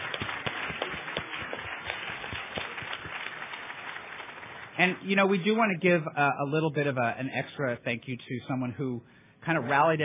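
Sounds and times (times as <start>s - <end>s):
round of applause: 0.0s - 5.0s
speech: 4.8s - 10.0s.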